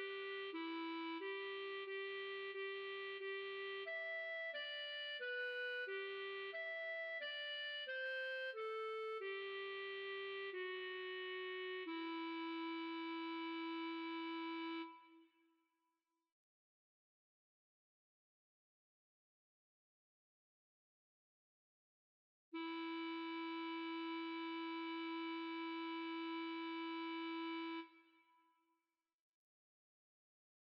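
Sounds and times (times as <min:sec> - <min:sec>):
clarinet: 0:00.0 - 0:15.3, 0:22.6 - 0:28.2.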